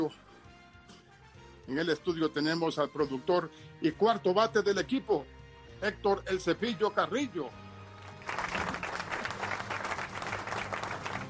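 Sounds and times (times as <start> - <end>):
speech: 0.0 - 0.2, 1.7 - 7.6
applause sound effect: 8.0 - 11.2.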